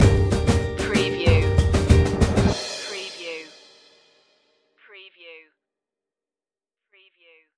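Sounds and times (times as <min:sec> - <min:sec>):
music stinger: 0:00.0 - 0:04.0.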